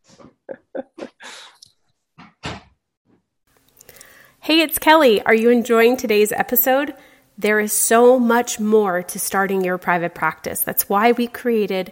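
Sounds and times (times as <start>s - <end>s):
door being shut: 2.2s - 2.8s
speech: 4.5s - 11.9s.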